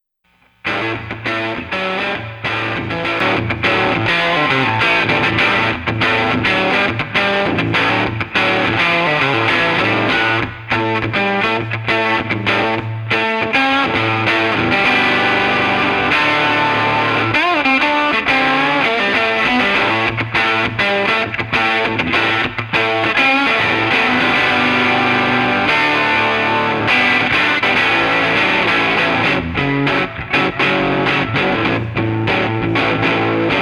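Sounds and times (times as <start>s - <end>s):
guitar: 0.3s - 33.6s.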